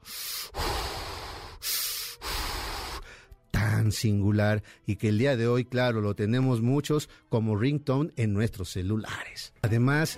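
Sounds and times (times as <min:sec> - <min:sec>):
movie villain's mechanical respirator breathing: 0:00.0 - 0:03.2
speech: 0:03.9 - 0:10.1.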